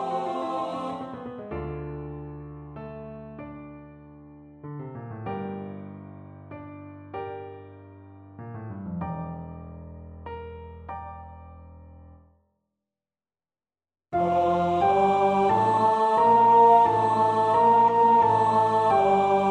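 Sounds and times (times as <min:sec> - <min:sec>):
alto singing: 0:00.0 - 0:01.3, 0:14.2 - 0:19.4.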